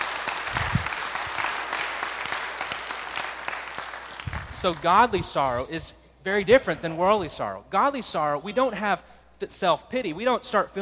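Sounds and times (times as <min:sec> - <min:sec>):
audience applause: 0:00.0 - 0:04.8
speech: 0:04.6 - 0:10.8.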